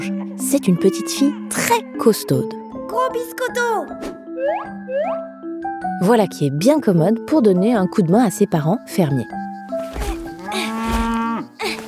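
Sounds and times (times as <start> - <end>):
speech: 0.5 - 9.4
cow mooing on a farm in the Vosges: 10.4 - 11.6.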